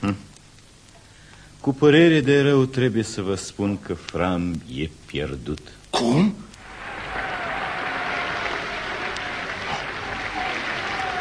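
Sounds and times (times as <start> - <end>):
speech: 1.6 - 6.5
circus audience calling for Fram the bear: 6.6 - 11.1.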